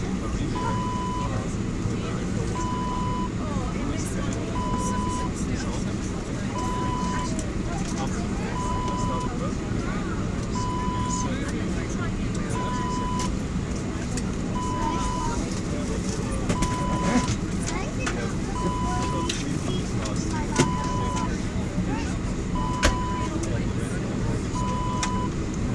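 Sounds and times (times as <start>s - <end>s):
aircraft interior ambience: 0.0s - 25.7s.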